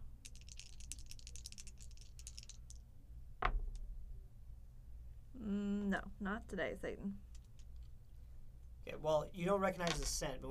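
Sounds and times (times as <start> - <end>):
low steady hum: 0.0 - 10.5
dice landing with a sharp clack: 0.2 - 2.8, 7.2 - 7.9
dice rattling: 0.2 - 3.8, 7.2 - 8.0
speech: 5.4 - 7.3, 8.9 - 10.5.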